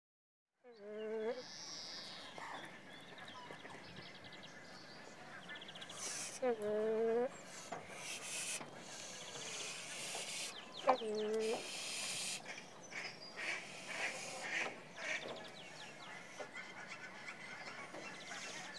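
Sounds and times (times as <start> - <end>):
Nene goose giving drawn-out nasal honking calls: 5.2 - 18.7.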